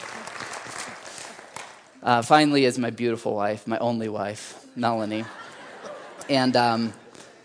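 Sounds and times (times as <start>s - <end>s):
audience clapping: 0.0s - 2.0s
speech: 2.0s - 5.4s, 6.3s - 7.0s
laughter: 4.9s - 7.4s.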